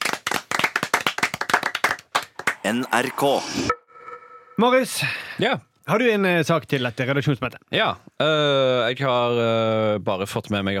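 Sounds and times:
small group clapping hands: 0:00.0 - 0:02.6
speech: 0:02.7 - 0:03.8, 0:04.6 - 0:10.7.

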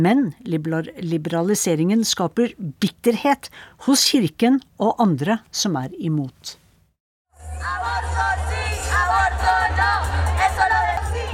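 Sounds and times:
speech: 0:00.0 - 0:06.6
crowd of demonstrators chanting slogans: 0:07.6 - 0:11.3.

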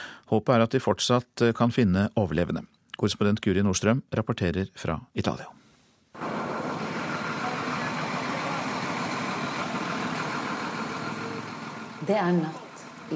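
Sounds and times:
speech: 0:00.3 - 0:05.6, 0:12.0 - 0:13.1
excavators: 0:06.2 - 0:13.1
rescue vehicles driving in: 0:06.2 - 0:13.1.

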